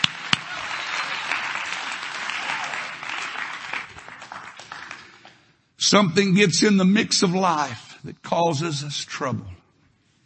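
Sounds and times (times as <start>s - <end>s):
audience clapping hands: 0.0s - 5.5s
speech: 5.9s - 9.6s.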